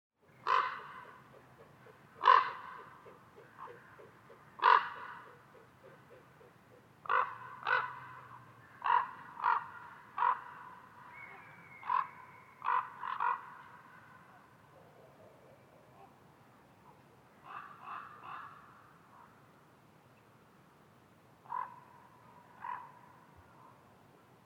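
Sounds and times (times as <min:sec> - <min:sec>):
common raven croaking in Schorfheide: 0:00.4 - 0:01.3, 0:02.2 - 0:05.3, 0:07.0 - 0:10.8, 0:11.8 - 0:14.2, 0:17.4 - 0:18.8, 0:21.4 - 0:23.2.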